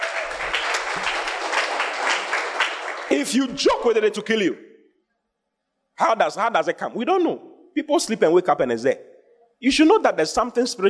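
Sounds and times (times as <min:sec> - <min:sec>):
clapping: 0:00.0 - 0:03.4
speech: 0:03.1 - 0:04.7, 0:06.0 - 0:10.8.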